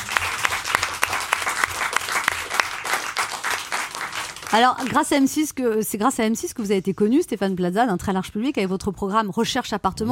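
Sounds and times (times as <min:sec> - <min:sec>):
audience applause: 0:00.0 - 0:05.0
speech: 0:04.5 - 0:10.1.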